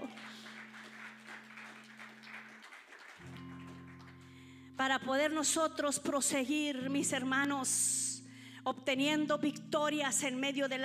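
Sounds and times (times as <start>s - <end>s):
audience applauding: 0.0s - 4.4s
speech: 4.8s - 8.0s, 8.7s - 10.8s.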